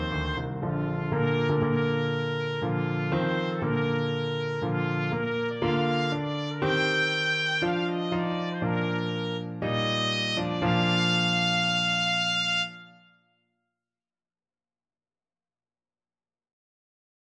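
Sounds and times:
trumpet playing a wedding march: 0.0s - 13.2s.

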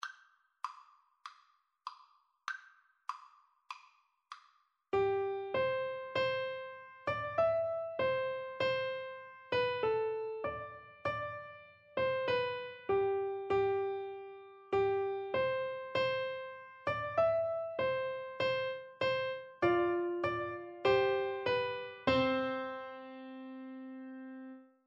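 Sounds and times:
piano duet: 5.0s - 24.7s.

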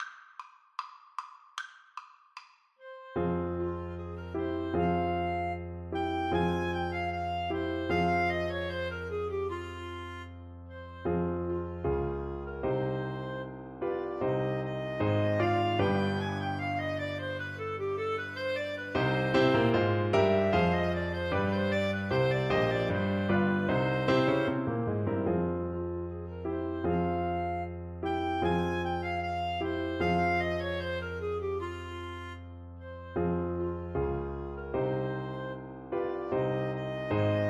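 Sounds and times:
clarinet duet: 2.8s - 37.4s.

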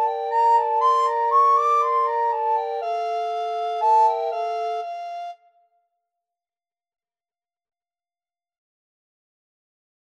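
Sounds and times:
recorder trio playing a minuet: 0.0s - 5.3s.

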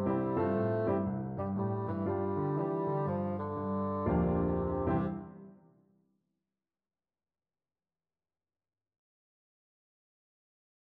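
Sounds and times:
bassoon: 0.0s - 5.6s.

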